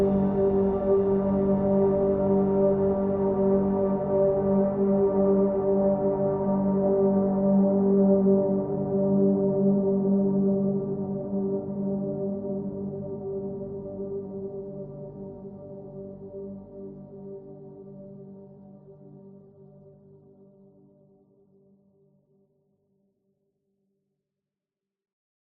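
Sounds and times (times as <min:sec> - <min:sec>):
ambient music: 0:00.0 - 0:20.2.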